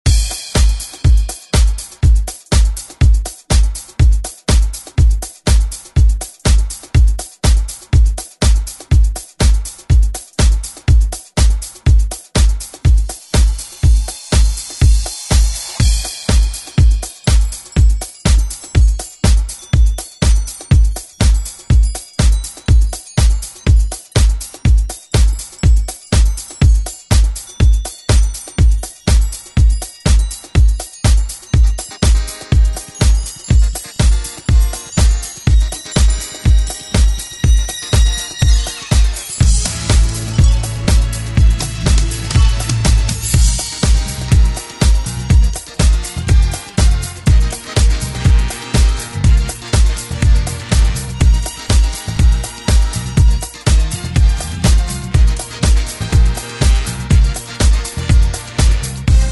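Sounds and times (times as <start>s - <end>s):
70s instrumental music: 0.0s - 59.3s.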